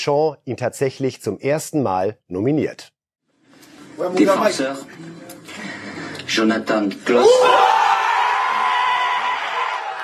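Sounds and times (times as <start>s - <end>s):
speech: 0.0s - 3.0s, 4.0s - 7.8s
teammates cheering loudly in celebration: 7.2s - 10.0s.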